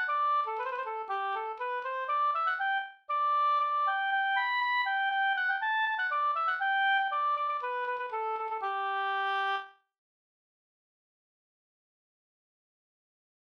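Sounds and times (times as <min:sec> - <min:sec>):
Swedish polska folk tune: 0:00.0 - 0:09.6.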